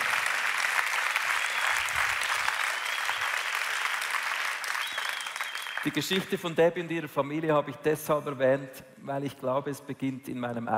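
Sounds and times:
audience applause: 0:00.0 - 0:06.0
speech: 0:05.8 - 0:10.7.

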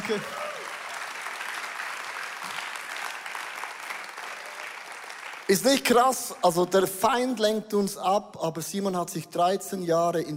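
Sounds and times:
audience clapping: 0:00.0 - 0:06.6
speech: 0:00.1 - 0:00.5, 0:05.5 - 0:10.3.

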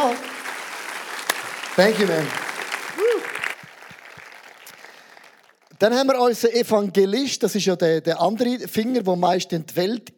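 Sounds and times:
audience clapping: 0:00.0 - 0:06.2
speech: 0:01.8 - 0:02.4, 0:05.8 - 0:10.1.

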